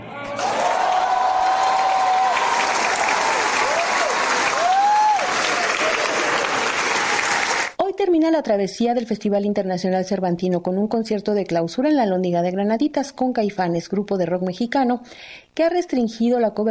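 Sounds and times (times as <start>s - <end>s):
concert audience applause: 0.1s - 7.8s
speech: 8.4s - 16.6s.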